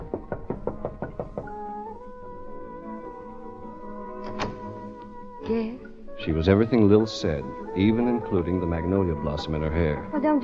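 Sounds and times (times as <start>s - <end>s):
knocking on a dressing room door: 0.0s - 1.8s
speech: 5.5s - 10.4s.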